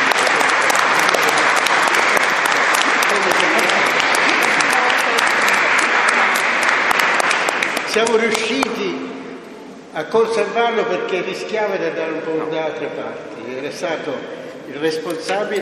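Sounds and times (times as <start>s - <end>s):
audience applause: 0.0s - 8.7s
speech: 8.0s - 8.8s, 10.0s - 15.6s.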